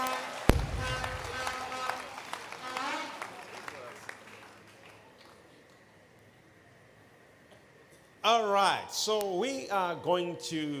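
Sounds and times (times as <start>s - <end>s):
audience clapping hands: 0.0s - 5.6s
speech: 8.2s - 10.7s.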